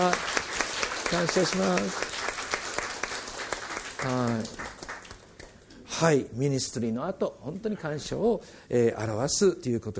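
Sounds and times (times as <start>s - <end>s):
audience applause: 0.0s - 5.2s
speech: 1.1s - 2.2s, 4.0s - 4.7s, 6.0s - 9.9s.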